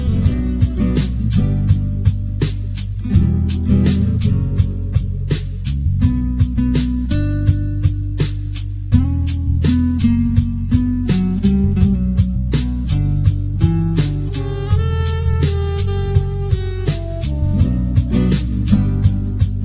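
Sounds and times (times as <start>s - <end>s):
chill flamenco music: 0.0s - 19.6s.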